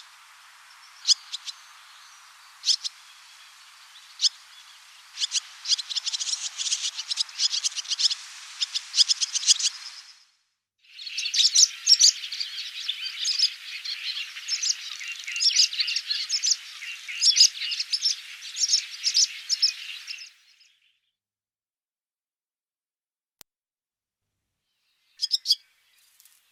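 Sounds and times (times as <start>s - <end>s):
barn swallow twittering: 0.0s - 10.2s, 10.9s - 20.8s, 25.2s - 25.7s.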